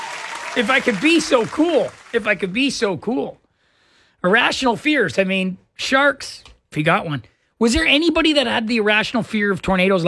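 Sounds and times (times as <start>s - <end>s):
applause: 0.0s - 2.8s
speech: 0.5s - 3.4s, 4.2s - 10.0s.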